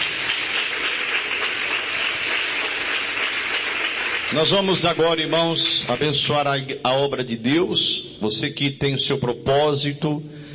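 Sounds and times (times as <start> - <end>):
audience clapping: 0.0 - 6.5
speech: 4.3 - 10.4.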